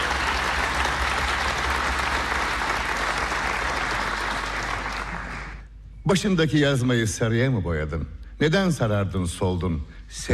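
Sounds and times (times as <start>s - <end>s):
audience applause greeting female folk singers at a concert: 0.0s - 5.7s
speech: 6.1s - 10.3s.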